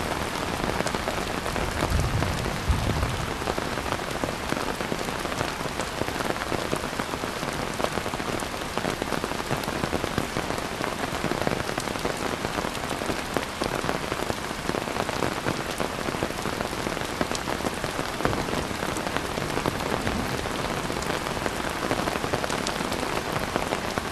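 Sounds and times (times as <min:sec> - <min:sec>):
heavy rain on an umbrella in Kuala Lumpur Malaysia: 0:00.0 - 0:24.0
thunder in Kuala Lumpur Malaysia: 0:01.7 - 0:03.7.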